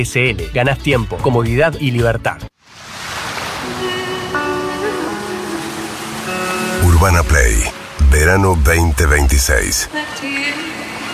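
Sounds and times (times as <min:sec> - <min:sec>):
speech: 0:00.0 - 0:02.5, 0:07.0 - 0:10.7
ocean surf washing onto a beach: 0:02.6 - 0:08.0, 0:09.8 - 0:11.1.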